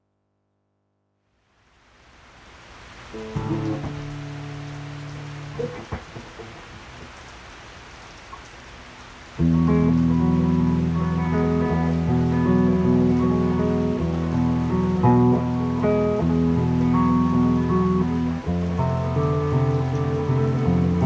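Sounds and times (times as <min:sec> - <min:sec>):
rain: 0:01.4 - 0:21.0
guitar playing: 0:03.1 - 0:07.0, 0:09.4 - 0:21.0.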